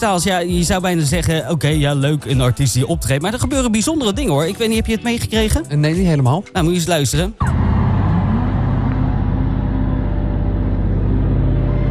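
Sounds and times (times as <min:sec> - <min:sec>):
speech: 0:00.0 - 0:07.6
low rumbling tension-building piano: 0:07.4 - 0:11.8.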